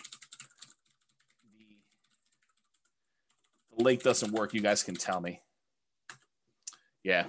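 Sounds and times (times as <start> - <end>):
typing on a computer keyboard: 0.0 - 5.3, 6.1 - 6.3
speech: 3.8 - 5.5, 7.0 - 7.2.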